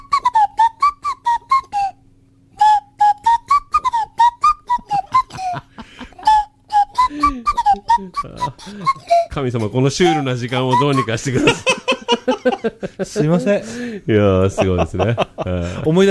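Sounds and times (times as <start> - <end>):
person whistling an imitation of a phone ringtone: 0.0 - 2.0, 2.6 - 5.4, 6.2 - 9.3, 10.0 - 11.2
laughter: 4.8 - 13.8, 14.4 - 16.1
speech: 8.2 - 16.1.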